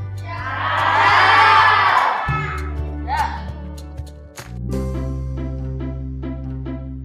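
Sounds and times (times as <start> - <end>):
group of children shouting goodbye: 0.3 - 3.5.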